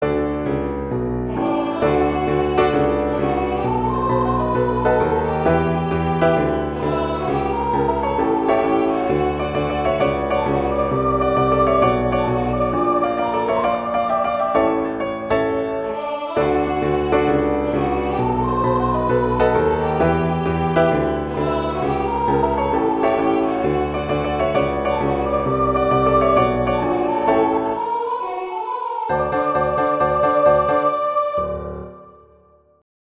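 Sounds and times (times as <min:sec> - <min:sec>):
piano: 0:00.0 - 0:32.8
singing voice: 0:01.3 - 0:14.8, 0:15.9 - 0:32.0.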